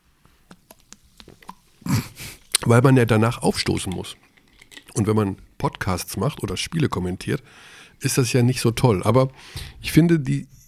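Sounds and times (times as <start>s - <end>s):
carbonated mineral water fizzing with crisp clicks and pops: 0.2s - 5.3s
person gulping carbonated water: 0.5s - 2.7s, 3.5s - 5.2s
speech: 1.9s - 4.3s, 5.0s - 10.6s.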